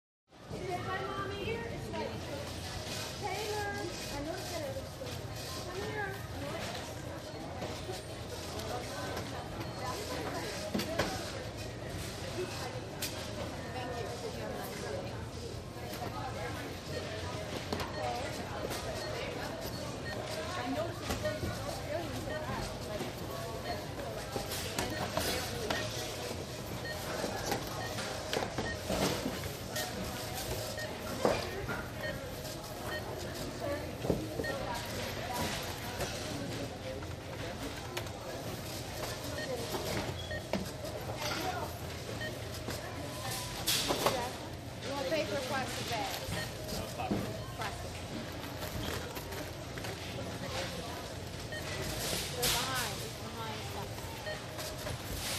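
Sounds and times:
supermarket checkout sounds: 0.4s - 55.3s.

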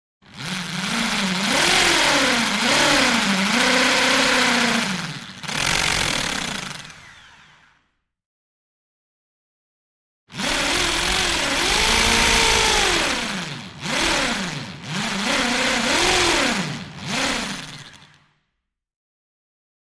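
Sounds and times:
hand drill impact run: 0.2s - 8.0s, 10.3s - 18.4s.

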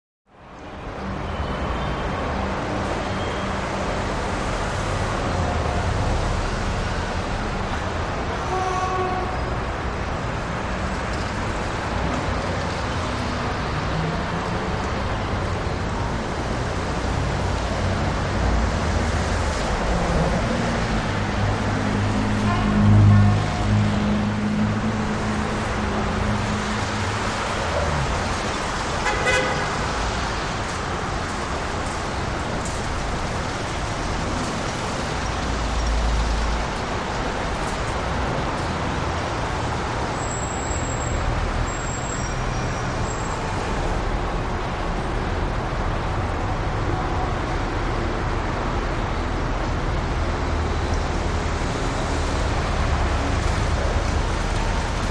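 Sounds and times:
New York City big city traffic: 0.3s - 55.1s.

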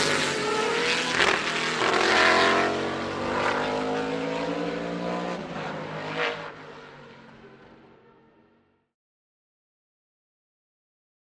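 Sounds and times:
sports car passing by: 0.0s - 7.7s.

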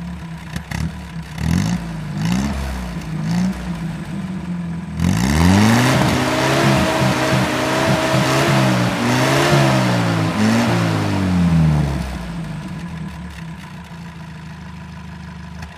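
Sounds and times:
army jeep engine starting and revving: 0.6s - 13.2s.

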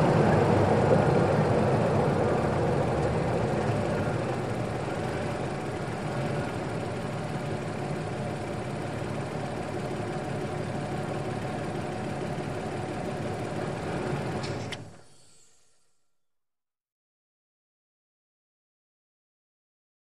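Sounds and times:
SUV driving at 25 to 35 mph: 0.0s - 15.0s.

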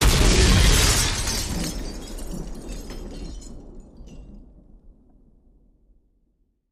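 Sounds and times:
glass debris: 0.0s - 4.3s
explosion: 0.0s - 4.8s.

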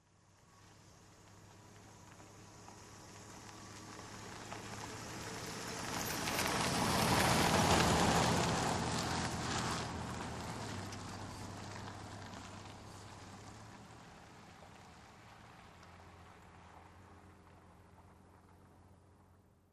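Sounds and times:
car driving by slowly on wet gravel: 0.0s - 19.7s.

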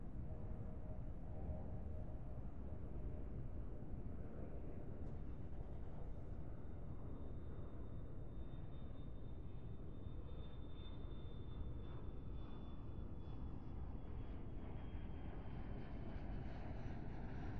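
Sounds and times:
commercial aircraft at an airport: 0.0s - 17.5s.

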